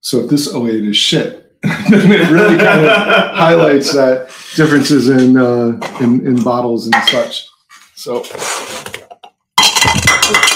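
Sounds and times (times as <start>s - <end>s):
speech: 0.0s - 9.0s, 9.7s - 10.5s
laughter: 1.6s - 4.9s
cups clinking and clattering as they are grabbed beside the microphone: 6.9s - 7.3s, 9.0s - 10.5s.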